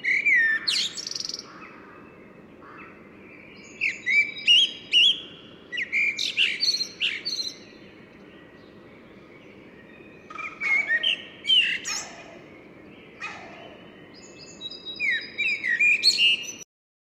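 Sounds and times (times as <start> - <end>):
common blackbird singing: 0.0 - 16.7.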